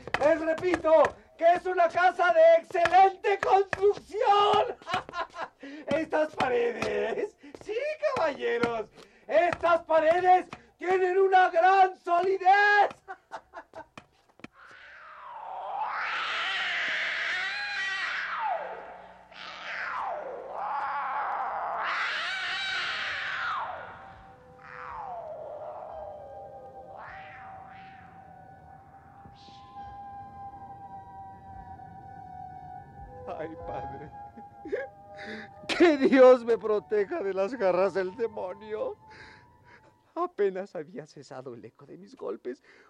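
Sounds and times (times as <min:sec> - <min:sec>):
speech: 0:00.4 - 0:05.0, 0:05.6 - 0:13.4, 0:36.0 - 0:39.2, 0:40.2 - 0:42.8
laughter: 0:04.5 - 0:07.4, 0:12.9 - 0:14.0
cat wailing from inside a walled tomb: 0:14.6 - 0:18.7, 0:19.3 - 0:28.2.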